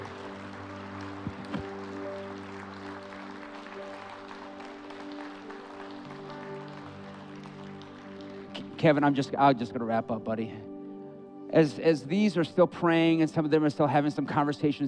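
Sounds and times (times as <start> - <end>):
audience clapping: 0.0 - 9.2
speech: 8.8 - 10.7, 11.5 - 14.8.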